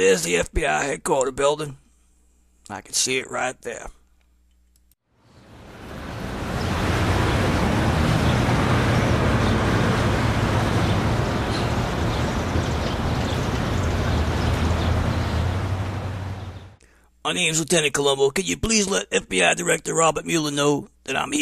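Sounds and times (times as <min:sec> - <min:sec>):
speech: 0:00.0 - 0:01.8, 0:02.7 - 0:04.0, 0:17.2 - 0:21.4
city street traffic: 0:05.2 - 0:16.8.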